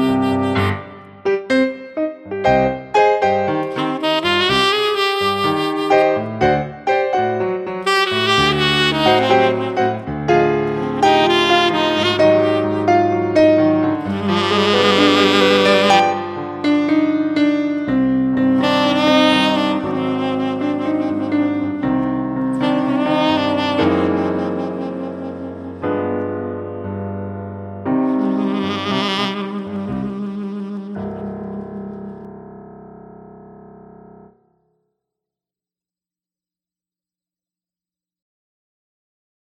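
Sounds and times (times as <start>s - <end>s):
saxophone: 0.0s - 26.4s, 27.8s - 32.3s
piano: 0.0s - 34.8s.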